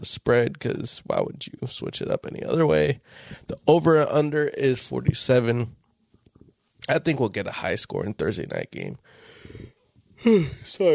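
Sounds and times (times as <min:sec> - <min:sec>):
speech: 0:00.0 - 0:05.8, 0:06.9 - 0:10.9
person yawning: 0:10.2 - 0:10.7.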